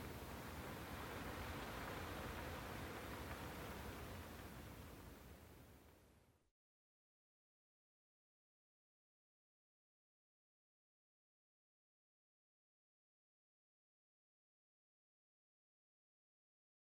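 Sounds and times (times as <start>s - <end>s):
light breeze among trees: 0.0s - 6.5s.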